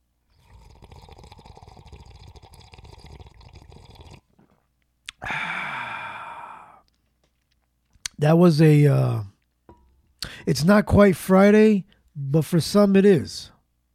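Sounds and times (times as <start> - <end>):
person sipping coffee: 0.4 - 8.1
speech: 8.2 - 9.3, 10.4 - 13.5.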